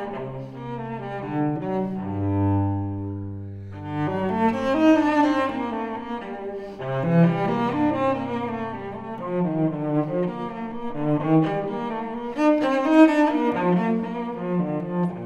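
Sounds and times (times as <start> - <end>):
solo cello piece in G: 0.0 - 15.2.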